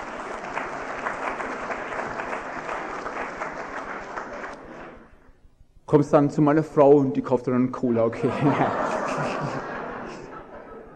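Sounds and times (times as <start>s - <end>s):
audience applause: 0.0s - 5.0s
speech: 5.9s - 9.6s
laughter: 8.0s - 10.9s.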